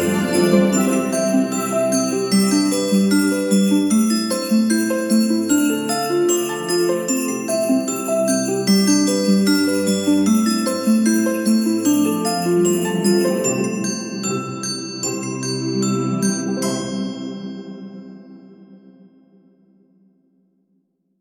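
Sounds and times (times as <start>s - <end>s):
strings playing: 0.0s - 3.8s
Christmas bells: 0.0s - 18.9s.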